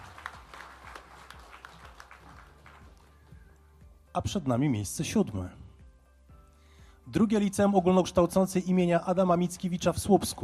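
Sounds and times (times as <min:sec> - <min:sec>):
audience applause: 0:00.0 - 0:03.2
speech: 0:04.2 - 0:05.6, 0:07.1 - 0:10.4.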